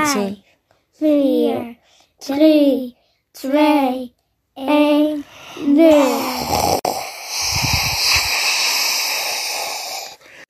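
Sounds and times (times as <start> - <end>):
speech: 0.1 - 0.4, 1.0 - 7.6
voice imitating rocket lift-off roar: 5.6 - 10.2.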